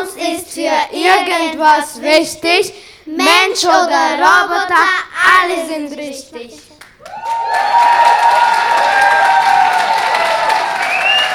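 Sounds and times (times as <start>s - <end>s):
speech: 0.5s - 9.6s
audience applause: 6.8s - 11.3s.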